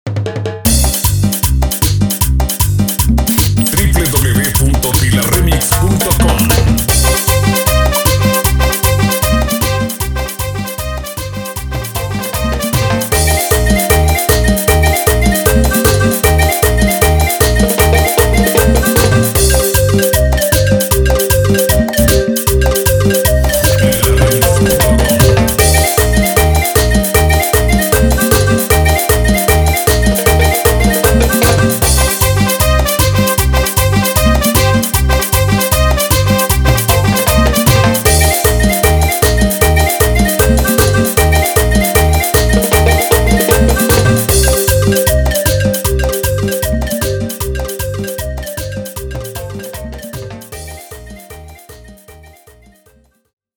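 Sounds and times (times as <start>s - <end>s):
saltadito instrumental music: 0.1s - 53.1s.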